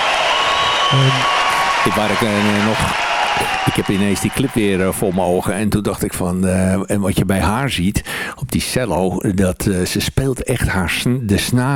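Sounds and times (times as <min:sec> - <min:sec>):
applause: 0:00.0 - 0:05.6
speech: 0:00.9 - 0:11.7.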